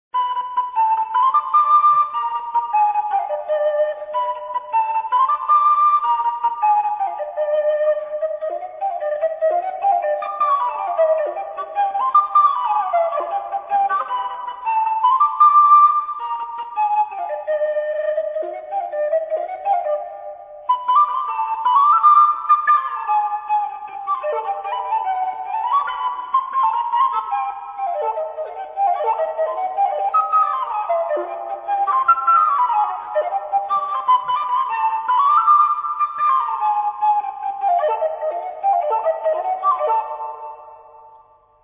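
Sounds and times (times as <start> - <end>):
sopilka flute: 0.1 - 41.6.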